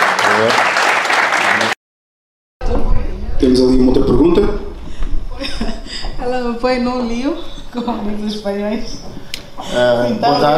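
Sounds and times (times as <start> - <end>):
audience applause: 0.0 - 1.8
speech: 0.4 - 0.7, 3.4 - 4.5, 6.2 - 10.5
laughter: 5.3 - 6.2.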